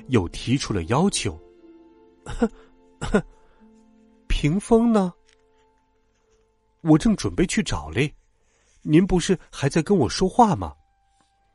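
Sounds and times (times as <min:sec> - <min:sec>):
speech: 0:00.1 - 0:01.4, 0:02.3 - 0:03.4, 0:04.4 - 0:05.2, 0:06.8 - 0:08.2, 0:08.8 - 0:10.8
person coughing deliberately: 0:02.3 - 0:03.4.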